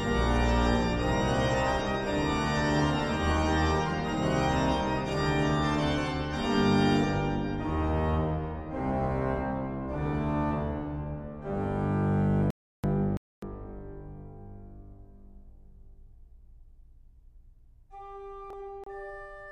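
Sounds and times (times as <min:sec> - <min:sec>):
organ piece in G minor on the Muensterorgel: 0:00.0 - 0:13.0.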